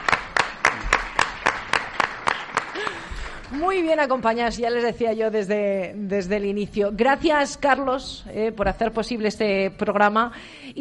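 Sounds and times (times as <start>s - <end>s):
audience applause: 0.0s - 3.6s
speech: 3.5s - 10.8s.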